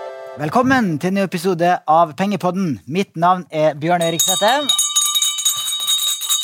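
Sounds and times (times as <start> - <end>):
speech: 0.4 - 4.8
hand bell ringing: 4.0 - 6.4.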